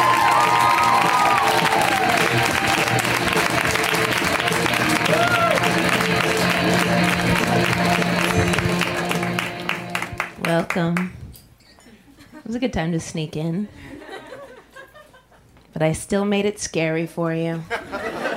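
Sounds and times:
audience whoops: 0.0 - 3.2, 4.8 - 6.0
audience applause for a stand-up comedian: 0.0 - 11.1
speech: 12.6 - 13.9, 15.8 - 17.8
laughter: 13.8 - 15.5, 17.7 - 18.3.

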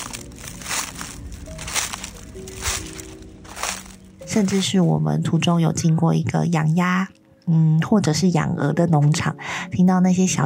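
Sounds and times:
footsteps on fallen leaves: 0.0 - 4.9
speech: 4.4 - 10.4.

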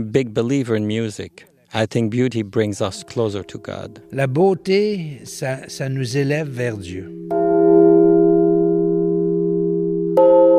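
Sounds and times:
speech: 0.0 - 7.4
church bell ringing from bell tower: 2.8 - 10.5.

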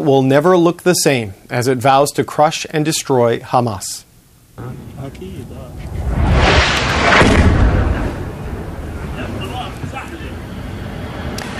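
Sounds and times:
speech: 0.0 - 6.2
explosion of an Israeli missile striking Gaza City: 4.6 - 9.8.

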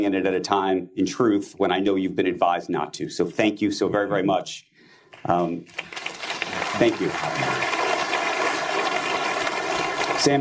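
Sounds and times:
speech: 0.0 - 6.1, 6.8 - 7.8, 10.2 - 10.4
audience applause: 5.6 - 10.4.

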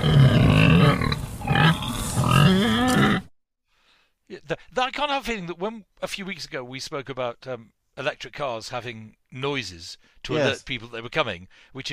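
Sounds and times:
pig grunting: 0.0 - 3.3
speech: 2.5 - 2.8, 4.8 - 11.9.

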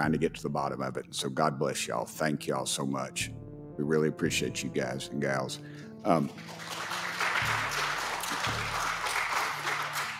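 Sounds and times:
speech: 0.0 - 6.9
audience clapping: 6.1 - 10.1.

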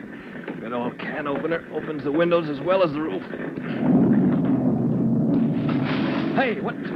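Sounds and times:
fire roaring: 0.0 - 6.9
speech: 0.6 - 4.2, 6.4 - 6.9
debris crashing: 3.6 - 6.9.

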